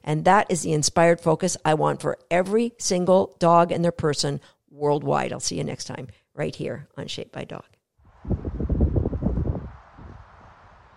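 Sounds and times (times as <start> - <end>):
speech: 0.1 - 7.7
leaves blowing in the wind: 8.1 - 10.9.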